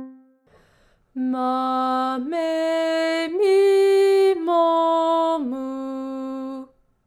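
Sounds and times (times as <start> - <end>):
person doing vocal exercises: 1.1 - 6.7.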